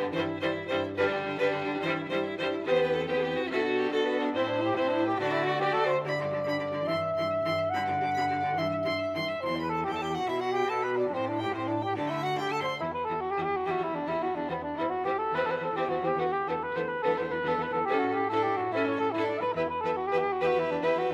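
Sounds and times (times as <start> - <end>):
saxophone: 0.0 - 21.1
strings: 0.0 - 21.1.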